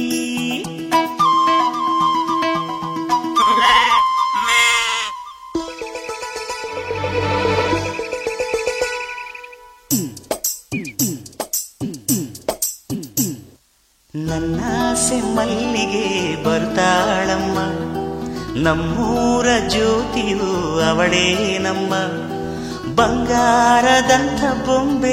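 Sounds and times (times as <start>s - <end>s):
music: 0.0s - 4.5s, 5.1s - 13.5s, 14.2s - 25.1s
lambs bleating: 3.4s - 5.3s
speech: 14.4s - 18.0s, 18.6s - 22.3s, 23.0s - 25.1s.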